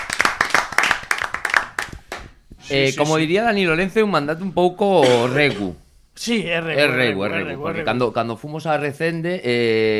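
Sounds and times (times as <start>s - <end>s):
small group applauding in thanks for a raw vegan brownie: 0.0s - 2.4s
speech: 2.7s - 9.9s.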